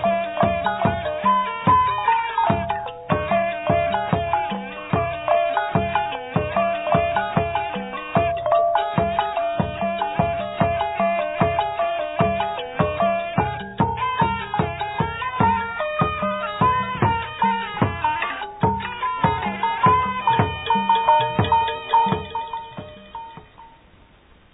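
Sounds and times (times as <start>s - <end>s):
khen free-reed mouth organ playing: 0.0s - 23.9s
pi noi small Lao oboe melody: 0.0s - 23.9s
Lao instrumental folk dance music: 0.0s - 24.0s.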